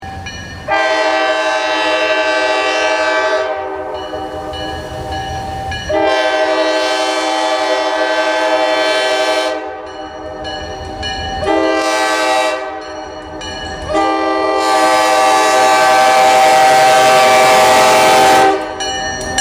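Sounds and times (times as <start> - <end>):
rail horn: 0.7 - 4.6, 5.9 - 9.9, 11.4 - 13.0, 13.9 - 18.8.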